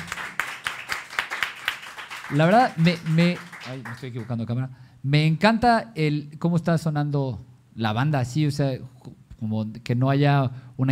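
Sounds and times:
audience applause: 0:00.0 - 0:04.3
speech: 0:02.3 - 0:10.9.

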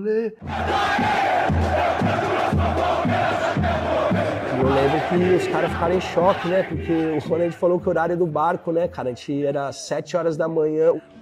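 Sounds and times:
speech: 0:00.0 - 0:02.2, 0:04.7 - 0:11.1
crowd of people on a boat shouting: 0:00.4 - 0:09.1.

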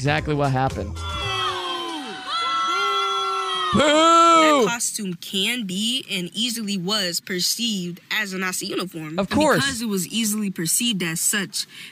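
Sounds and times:
speech: 0:00.0 - 0:01.1, 0:03.7 - 0:11.9
students booing: 0:01.0 - 0:04.7.

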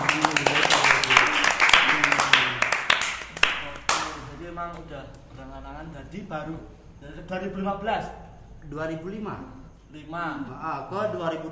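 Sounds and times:
hands clapping: 0:00.0 - 0:04.3
speech: 0:05.8 - 0:11.4.

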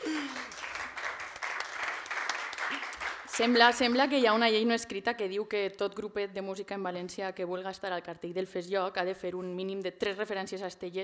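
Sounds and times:
audience applause: 0:00.0 - 0:03.6
speech: 0:03.4 - 0:11.0.

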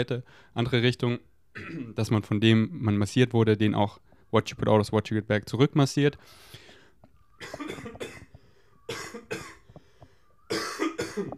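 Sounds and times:
speech: 0:00.0 - 0:06.6
person coughing after choking on something: 0:01.6 - 0:02.0, 0:07.4 - 0:09.7, 0:10.5 - 0:11.3.

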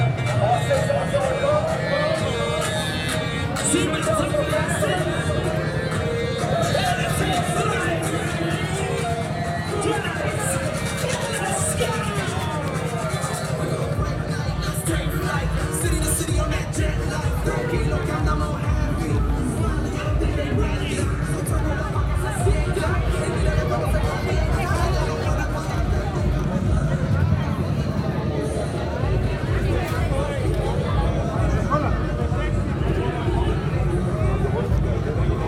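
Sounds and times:
low pulsing rhythm: 0:00.0 - 0:35.4
occasional louder voices: 0:00.0 - 0:35.4
street festival crowd chatter: 0:00.0 - 0:35.4.

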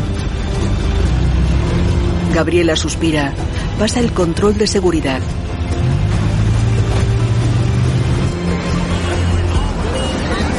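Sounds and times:
car driving away: 0:00.0 - 0:02.4, 0:05.2 - 0:10.5
speech: 0:02.4 - 0:05.5.

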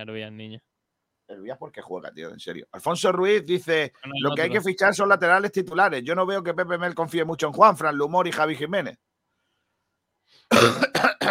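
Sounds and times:
speech: 0:00.0 - 0:00.7, 0:01.3 - 0:09.0, 0:10.3 - 0:11.2
cough: 0:10.5 - 0:11.2.

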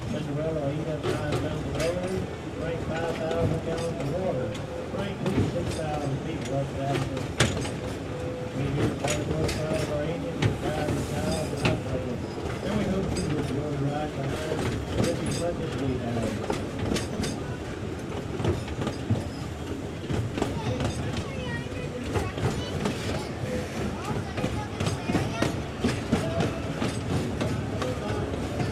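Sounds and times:
1930s steam locomotive chugging at Dollywood in Pigeon Forge: 0:00.0 - 0:28.6
train wheels clattering on steel rails: 0:00.0 - 0:28.6.

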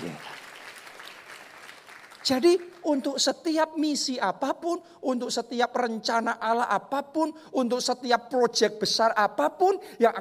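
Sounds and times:
audience applause: 0:00.0 - 0:02.2
speech: 0:02.3 - 0:10.1.

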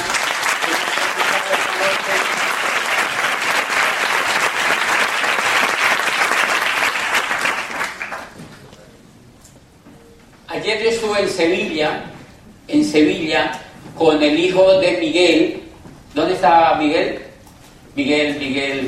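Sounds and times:
applause: 0:00.0 - 0:08.6
speech: 0:10.8 - 0:12.1, 0:12.7 - 0:15.6, 0:16.2 - 0:17.2, 0:18.0 - 0:18.8.

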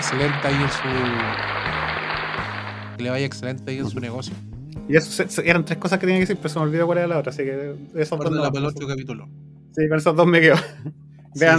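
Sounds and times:
applause: 0:00.0 - 0:03.0
speech: 0:00.1 - 0:01.8, 0:03.0 - 0:11.5.

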